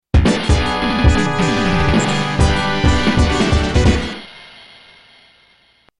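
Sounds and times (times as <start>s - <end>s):
victory music: 0.2s - 4.4s.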